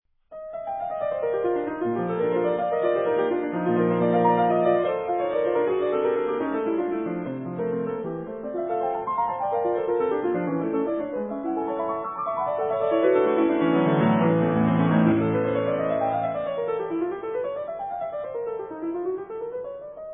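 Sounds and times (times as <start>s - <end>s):
piano toccatina in B major: 0.3s - 20.1s.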